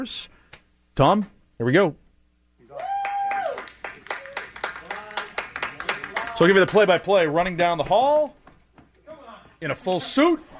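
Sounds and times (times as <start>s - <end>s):
speech: 0.0s - 0.4s, 1.0s - 2.0s, 6.4s - 8.4s, 9.6s - 10.5s
crowd cheering and clapping: 2.7s - 7.1s.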